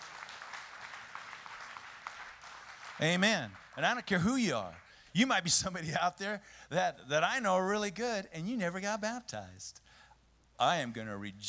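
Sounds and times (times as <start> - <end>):
audience hand clapping: 0.0 - 5.5
speech: 3.0 - 9.8, 10.6 - 11.4.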